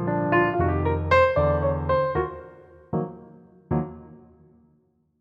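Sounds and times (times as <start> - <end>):
B flat piano note: 0.2 - 4.1.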